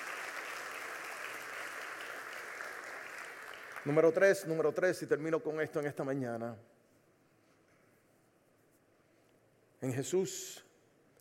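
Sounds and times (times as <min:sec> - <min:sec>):
audience applause: 0:00.0 - 0:04.1
speech: 0:03.8 - 0:06.7, 0:09.8 - 0:10.6.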